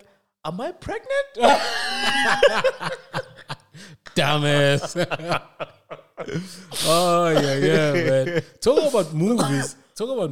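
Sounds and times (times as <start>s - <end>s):
speech: 0.4s - 10.2s
laughter: 1.4s - 9.7s
person coughing into microphone: 6.2s - 9.8s.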